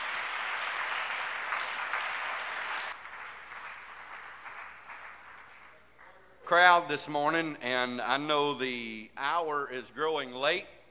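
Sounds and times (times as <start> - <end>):
audience applause: 0.0 - 5.8
speech: 6.5 - 10.8.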